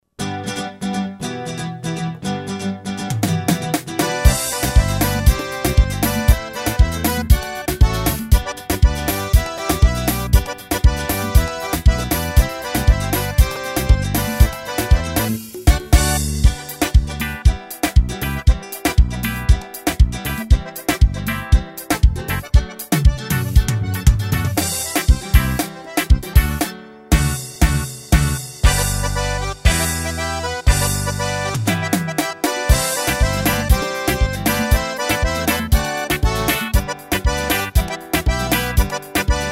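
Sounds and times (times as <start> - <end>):
slow vaneirão sertanejo rhythm: 0.2 - 39.4.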